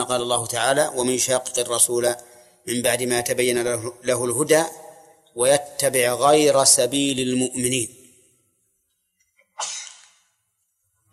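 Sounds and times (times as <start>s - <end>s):
speech: 0.0s - 8.0s
person sneezing: 9.6s - 10.1s
small catches of breath: 9.6s - 10.2s.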